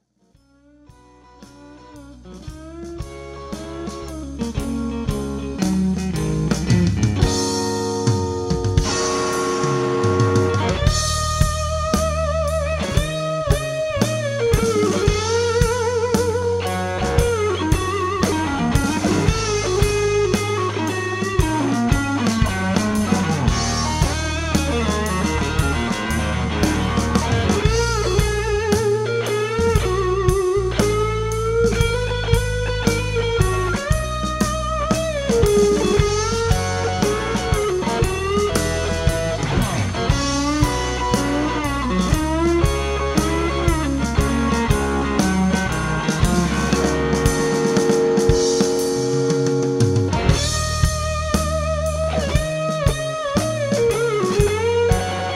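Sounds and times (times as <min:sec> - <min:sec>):
lead melody: 0:00.4 - 0:55.3.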